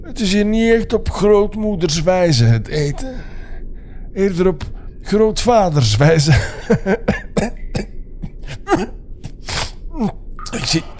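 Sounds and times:
speech: 0.1s - 3.3s, 4.2s - 7.6s, 8.7s - 9.0s, 10.0s - 10.9s
coughing: 6.3s - 10.9s.

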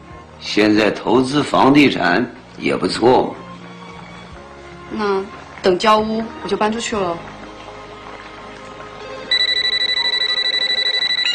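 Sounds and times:
speech: 0.4s - 3.4s, 4.9s - 7.4s
telephone ringing with electronic trill: 9.3s - 11.3s.

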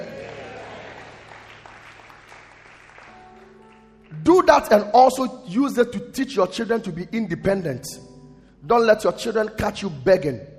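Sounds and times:
audience clapping hands: 0.0s - 4.5s
speech: 4.3s - 10.5s.

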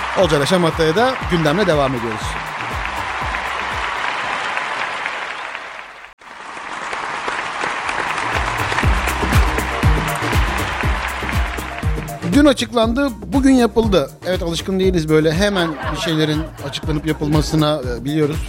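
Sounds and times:
applause: 0.0s - 12.5s
speech: 0.2s - 2.4s, 12.4s - 18.4s
laughter: 15.3s - 17.8s.

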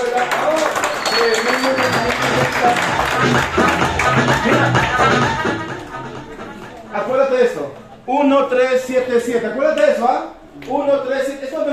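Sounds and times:
voices cheering: 0.0s - 3.1s
audience applause: 0.0s - 5.9s
speech: 2.6s - 5.6s, 7.2s - 11.7s.

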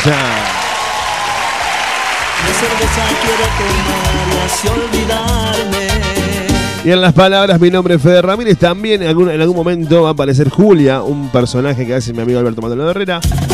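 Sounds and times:
speech: 0.0s - 0.5s, 2.5s - 13.5s
audience clapping and cheering: 0.0s - 6.4s
music or voices: 2.4s - 13.5s.

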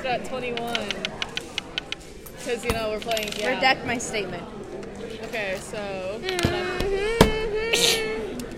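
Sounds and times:
speech: 0.1s - 1.1s, 2.5s - 7.2s
person sneezing: 7.6s - 8.3s.

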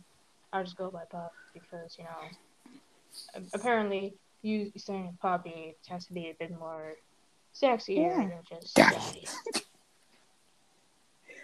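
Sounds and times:
speech: 0.5s - 9.6s
person clearing throat: 8.8s - 9.6s.

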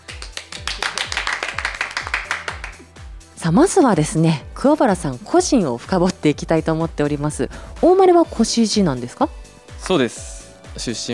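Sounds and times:
applause for a reunion: 0.0s - 2.9s
speech: 3.4s - 11.1s.

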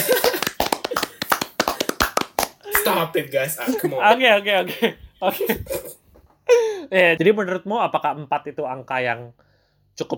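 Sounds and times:
hand clapping: 0.0s - 3.1s
speech: 2.9s - 6.0s, 6.9s - 9.4s, 10.0s - 10.1s.

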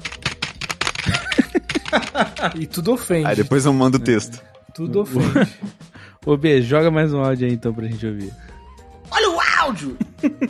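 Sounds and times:
keyboard typing: 0.0s - 2.8s
laughter: 1.0s - 2.8s, 5.1s - 5.8s, 9.8s - 10.4s
speech: 1.9s - 8.4s, 9.7s - 10.4s.

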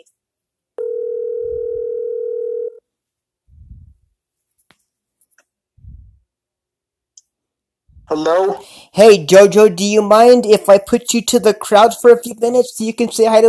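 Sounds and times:
telephone dial tone: 0.8s - 2.8s
speech: 8.1s - 13.4s.

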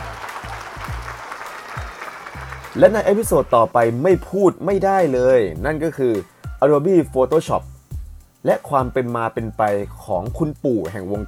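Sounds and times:
audience applause: 0.0s - 3.5s
speech: 2.8s - 7.7s, 8.4s - 11.2s.

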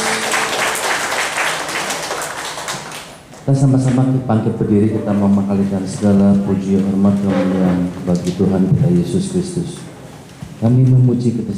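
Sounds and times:
audience applause: 0.0s - 3.3s
speech: 3.4s - 9.8s, 10.6s - 11.5s.

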